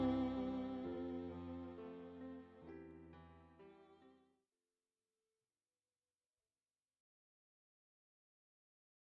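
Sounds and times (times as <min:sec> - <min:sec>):
keyboard playing cocktail and dinner music: 0:00.0 - 0:02.2.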